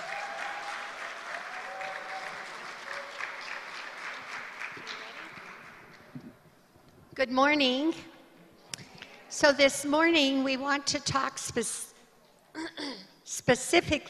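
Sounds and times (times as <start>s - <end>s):
crowd applause: 0.0s - 6.3s
speech: 7.2s - 8.1s, 9.4s - 11.9s, 12.8s - 14.0s.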